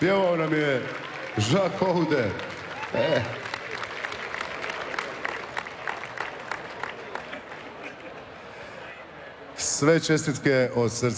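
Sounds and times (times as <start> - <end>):
speech: 0.0 - 3.4, 9.8 - 11.1
awards ceremony audience applauding: 0.0 - 8.3.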